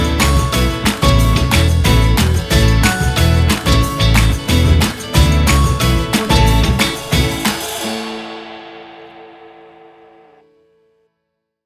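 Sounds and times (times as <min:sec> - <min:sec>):
happy upbeat music: 0:00.0 - 0:08.5.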